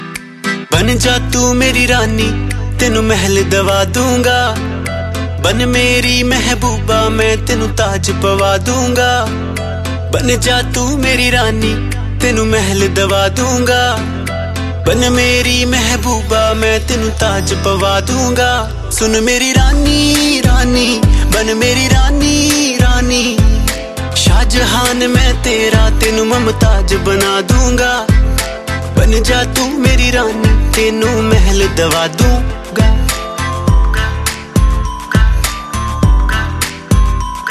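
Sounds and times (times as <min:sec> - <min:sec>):
new Punjabi ringtone: 0:00.0 - 0:37.4.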